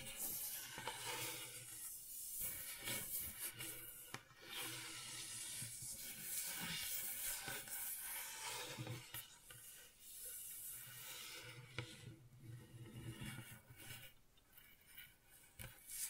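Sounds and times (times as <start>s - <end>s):
gentle scratching: 0.0s - 16.0s.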